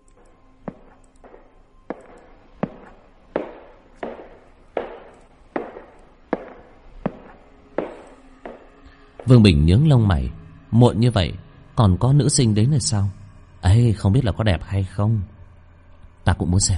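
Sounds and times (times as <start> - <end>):
slow hard-soled footsteps echoing in a corridor: 0.0 - 9.4
speech: 9.3 - 15.4, 16.2 - 16.7.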